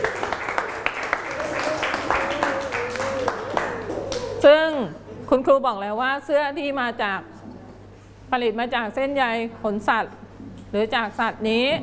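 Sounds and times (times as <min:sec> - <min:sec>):
children clapping for a classmate: 0:00.0 - 0:04.4
speech: 0:05.4 - 0:07.3, 0:08.3 - 0:11.8.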